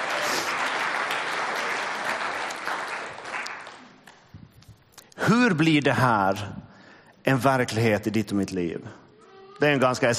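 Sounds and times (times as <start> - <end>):
audience applause: 0.0 - 4.0
speech: 5.3 - 6.6, 7.2 - 9.0, 9.6 - 10.1.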